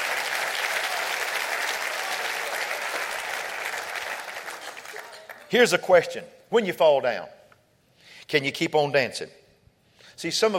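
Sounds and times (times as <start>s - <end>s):
audience clapping hands: 0.0s - 5.7s
speech: 5.5s - 7.4s, 8.3s - 9.4s, 10.2s - 10.5s.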